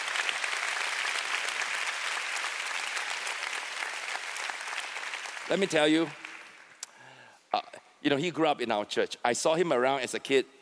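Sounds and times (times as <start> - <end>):
audience applauding: 0.0 - 6.8
speech: 5.5 - 6.2, 8.0 - 10.5.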